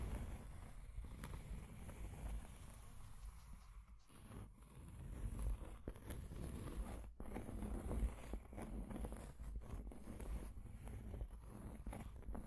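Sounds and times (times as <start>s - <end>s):
scratching and tracing rustle: 0.0s - 12.4s
sharp scrapes and ticks: 2.2s - 5.6s.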